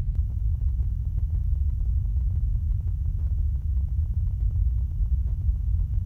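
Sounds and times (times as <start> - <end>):
40-80Hz pink noise at -20dBFS: 0.1 - 6.0.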